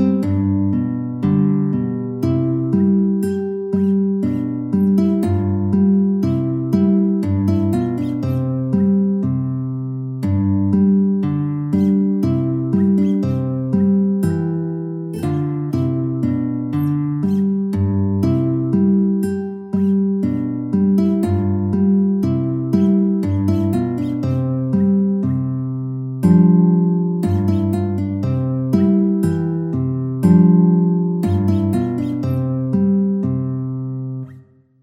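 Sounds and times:
lullaby on guitar: 0.0s - 34.8s.

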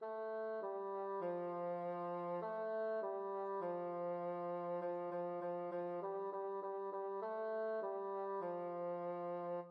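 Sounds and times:
bassoon: 0.0s - 9.6s.

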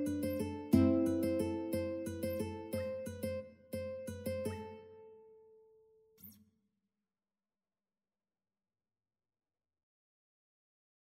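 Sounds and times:
ukulele playing a carol: 0.0s - 4.8s.

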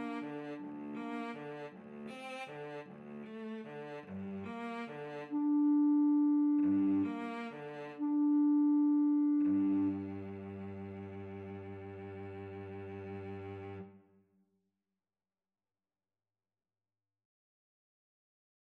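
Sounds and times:
clarinet and cello duet: 0.0s - 13.9s.

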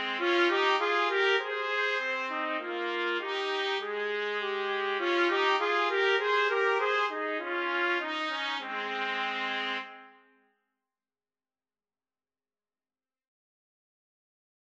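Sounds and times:
trumpet trio playing: 0.0s - 10.1s.

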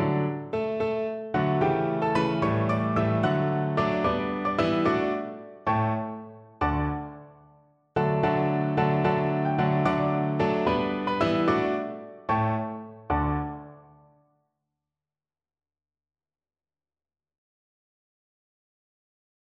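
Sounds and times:
piano piece: 0.0s - 14.1s.

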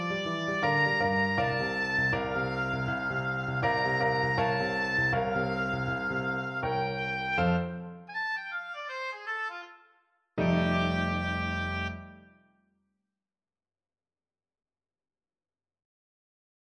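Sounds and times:
jazzy birthday tune on oboe: 0.0s - 12.4s.

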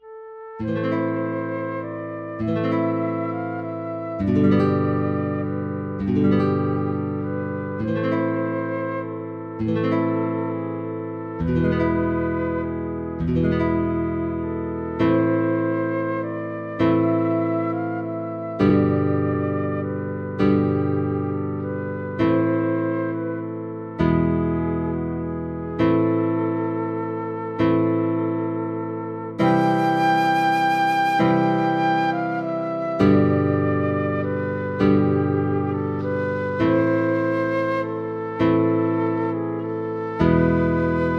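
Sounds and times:
guitar and flute duet: 0.0s - 41.1s.

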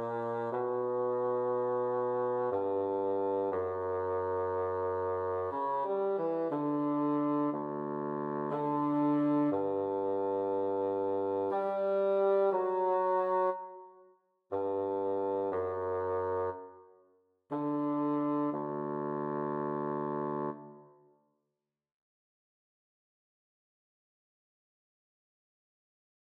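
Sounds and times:
bassoon duet playing an adagio: 0.0s - 13.9s, 14.5s - 16.9s, 17.5s - 20.9s.

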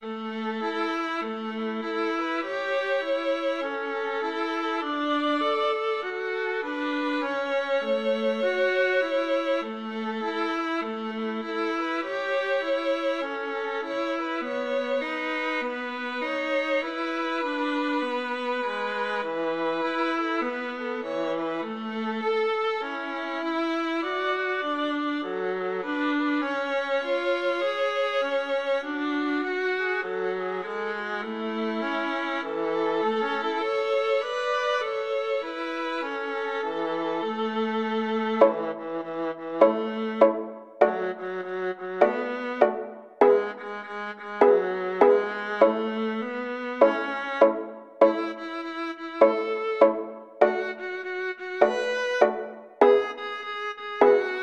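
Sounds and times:
violin and viola duet: 0.0s - 54.4s.

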